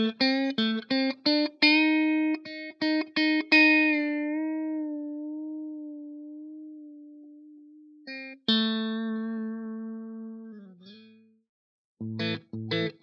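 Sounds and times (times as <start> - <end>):
Telecaster electric guitar on middle pickup: 0.0 - 11.2, 12.0 - 13.0.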